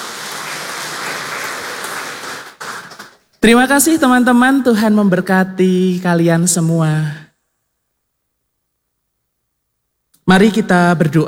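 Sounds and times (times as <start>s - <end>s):
audience applause: 0.0s - 3.2s
speech: 3.4s - 7.2s, 10.3s - 11.2s.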